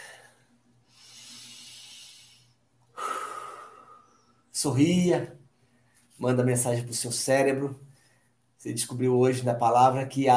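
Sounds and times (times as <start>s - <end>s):
deep breath taken with hands on the waist: 0.0s - 4.5s, 7.9s - 8.4s
speech: 4.6s - 5.4s, 6.2s - 7.9s, 8.6s - 10.3s.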